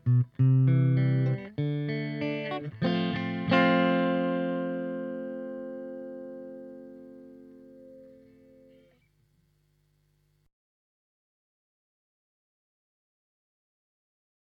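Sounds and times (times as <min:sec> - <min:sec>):
clean pentode amplifier tone: 0:00.0 - 0:10.5.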